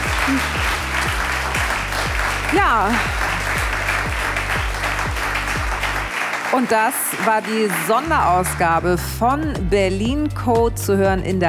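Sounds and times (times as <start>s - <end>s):
audience applause: 0.0s - 8.6s
speech: 0.3s - 0.8s, 2.5s - 3.3s, 6.5s - 11.4s.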